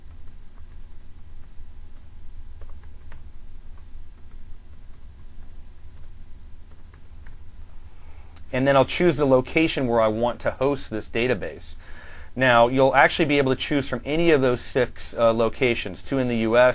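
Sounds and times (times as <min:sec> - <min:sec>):
typing a password on a computer keyboard: 0:00.0 - 0:07.4
hiss: 0:00.0 - 0:16.7
speech: 0:08.5 - 0:16.7.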